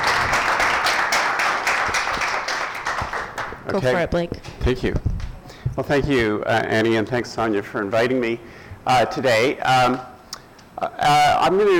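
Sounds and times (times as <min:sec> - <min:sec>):
audience applause for panelists: 0:00.0 - 0:03.6
speech: 0:03.7 - 0:05.1, 0:05.8 - 0:10.1, 0:10.8 - 0:11.7.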